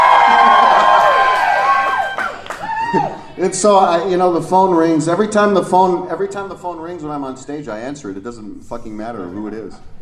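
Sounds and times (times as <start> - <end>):
crowd screaming at a live show: 0.0 - 3.3
speech: 2.9 - 9.9.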